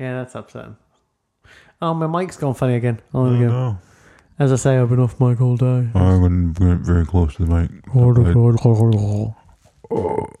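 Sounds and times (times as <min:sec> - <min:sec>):
speech: 0:00.0 - 0:10.3
person fake burping: 0:09.8 - 0:10.3.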